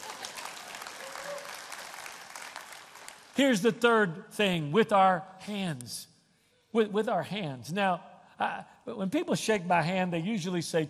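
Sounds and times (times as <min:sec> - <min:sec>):
audience clapping: 0:00.0 - 0:03.6
speech: 0:03.4 - 0:06.1, 0:06.7 - 0:10.8.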